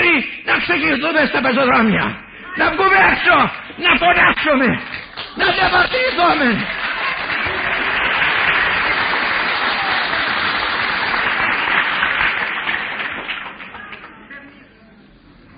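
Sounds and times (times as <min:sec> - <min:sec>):
speech: 0:00.6 - 0:06.8
audience applause: 0:05.0 - 0:14.2.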